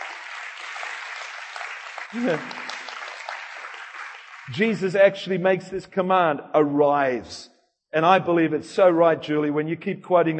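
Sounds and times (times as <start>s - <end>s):
audience clapping: 0.0s - 5.1s
speech: 2.1s - 2.6s, 4.5s - 10.3s.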